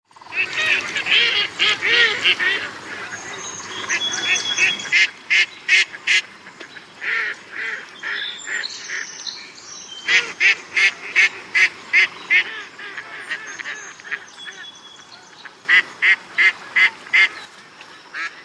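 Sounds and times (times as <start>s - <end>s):
mallard duck: 0.3s - 6.3s, 7.0s - 9.1s, 10.1s - 14.6s, 15.7s - 17.4s.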